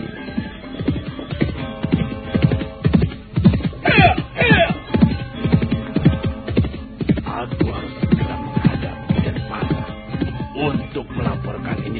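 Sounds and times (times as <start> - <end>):
hoofbeats of a horse ridden over a rocky brushy road: 0.0 - 11.9
horse whinnying: 3.4 - 5.3.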